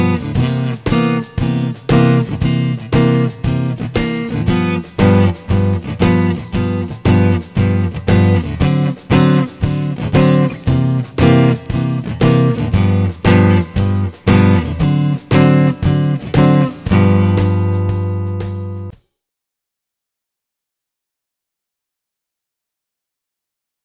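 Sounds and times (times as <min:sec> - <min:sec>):
rhythm guitar: 0:00.0 - 0:19.0.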